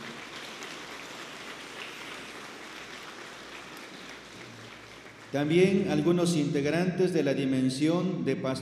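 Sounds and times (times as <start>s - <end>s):
audience applause: 0.0s - 5.6s
speech: 5.3s - 8.6s.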